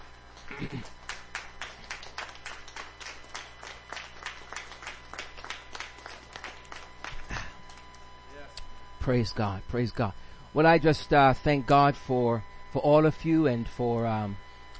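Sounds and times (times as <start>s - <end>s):
audience clapping: 0.3s - 8.0s
speech: 9.0s - 14.4s.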